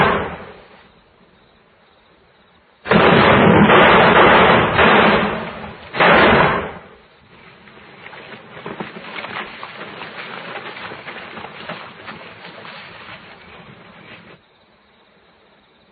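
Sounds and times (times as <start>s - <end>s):
gunshots in a radio drama: 0.0s - 0.6s, 2.8s - 7.0s.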